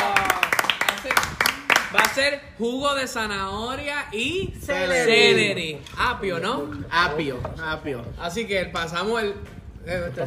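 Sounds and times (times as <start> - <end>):
applause: 0.0 - 2.2
speech: 2.2 - 10.2.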